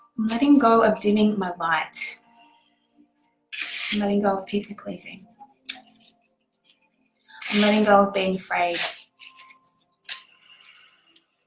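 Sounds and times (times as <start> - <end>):
speech: 0.2 - 2.2, 3.9 - 5.3, 7.5 - 8.9
paper being ripped: 3.5 - 4.1, 7.4 - 8.0, 8.6 - 10.3.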